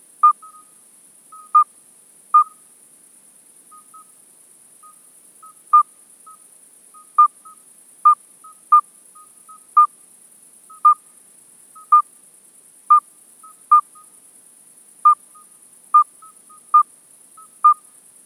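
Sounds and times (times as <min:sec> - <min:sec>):
midwife toad Alytes obstetricans calling: 0:00.2 - 0:01.7, 0:02.4 - 0:02.6, 0:03.7 - 0:04.1, 0:04.8 - 0:06.4, 0:07.0 - 0:10.0, 0:10.7 - 0:11.1, 0:11.8 - 0:12.1, 0:12.9 - 0:14.2, 0:15.0 - 0:18.0.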